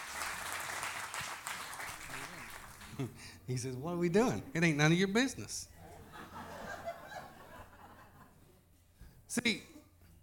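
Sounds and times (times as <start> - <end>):
audience hand clapping: 0.0 - 3.2
speech: 3.0 - 5.7, 9.3 - 9.7
laughter: 5.8 - 8.4.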